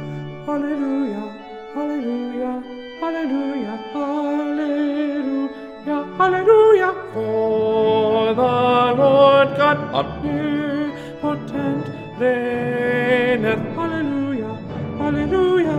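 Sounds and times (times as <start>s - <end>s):
tenor singing a choral part: 0.0s - 15.7s.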